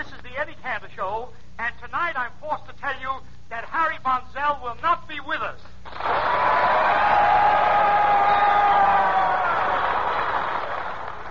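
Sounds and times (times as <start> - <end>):
speech: 0.0 - 6.4
studio audience applause: 5.9 - 11.2.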